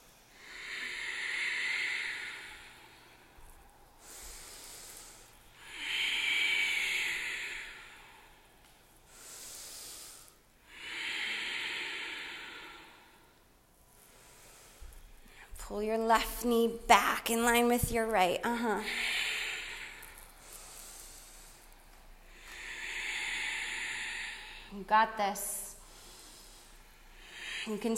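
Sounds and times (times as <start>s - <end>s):
ujjayi breathing through the nose with lips sealed during a yoga class: 0.2s - 13.4s, 18.8s - 24.8s, 25.5s - 27.9s
speech: 15.7s - 19.2s, 24.9s - 25.6s, 27.7s - 27.9s.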